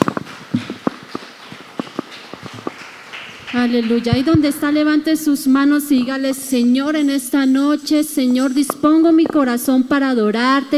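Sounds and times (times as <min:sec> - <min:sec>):
audience applauding: 0:00.0 - 0:04.4
speech: 0:03.6 - 0:10.7.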